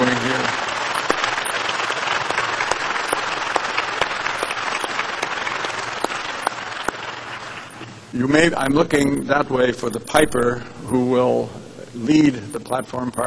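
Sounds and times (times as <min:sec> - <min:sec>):
audience applause: 0:00.0 - 0:07.8
speech: 0:08.2 - 0:13.2.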